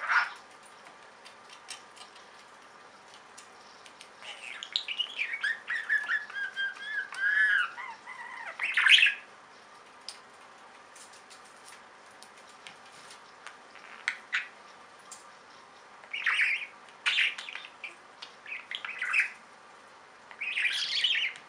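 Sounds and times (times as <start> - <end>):
budgerigar warbling chatter: 4.3 - 9.3, 16.1 - 19.4, 20.4 - 21.4.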